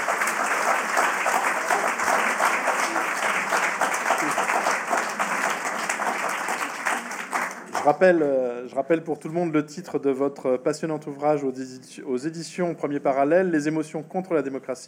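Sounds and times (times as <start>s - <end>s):
audience applause: 0.0s - 8.1s
speech: 7.9s - 14.8s.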